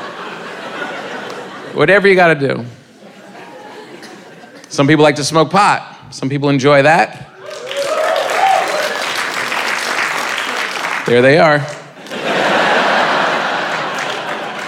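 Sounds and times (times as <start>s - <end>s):
laughter: 0.0s - 2.2s, 2.9s - 4.7s, 12.0s - 14.6s
speech: 1.8s - 2.8s, 4.7s - 7.6s, 11.1s - 11.8s
small audience clapping: 7.4s - 14.6s.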